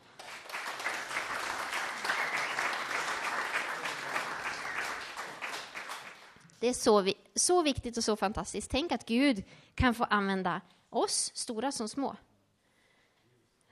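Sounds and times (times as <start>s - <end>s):
crowd applauding: 0.0s - 6.4s
speech: 6.6s - 12.3s.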